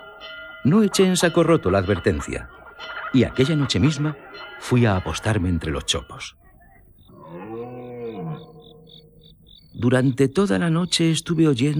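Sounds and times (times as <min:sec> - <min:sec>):
laughter: 0:00.0 - 0:07.0
speech: 0:00.6 - 0:06.4, 0:09.8 - 0:11.7
deer bellowing and calling to one another at night: 0:07.1 - 0:09.5.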